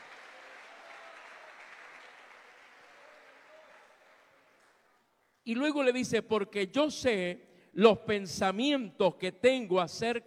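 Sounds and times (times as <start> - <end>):
audience applause: 0.0 - 4.9
speech: 5.5 - 10.2.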